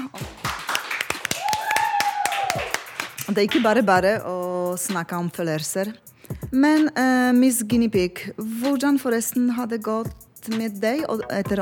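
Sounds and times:
people clapping: 0.0 - 3.7
speech: 3.3 - 11.6.

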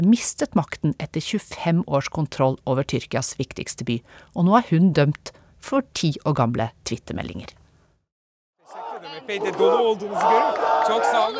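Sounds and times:
speech: 0.0 - 7.6, 9.0 - 11.3
protest crowd chanting rhythmically in unison: 8.6 - 11.3.

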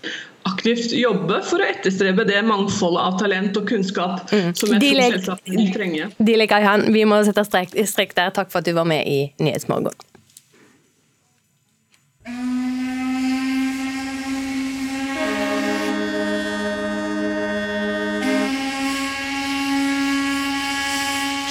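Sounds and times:
speech: 0.0 - 10.1
ship whistles blaring in a harbour: 12.3 - 21.4.

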